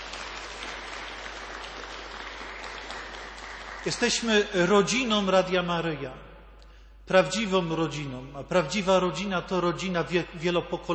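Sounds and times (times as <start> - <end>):
audience applause: 0.0 - 4.3
speech: 3.8 - 6.3, 7.1 - 10.9.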